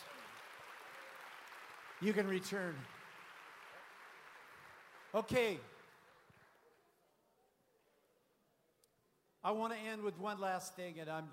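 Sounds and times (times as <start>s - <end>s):
crowd clapping: 0.0s - 7.0s
speech: 2.0s - 3.0s, 5.1s - 5.7s, 9.4s - 11.3s.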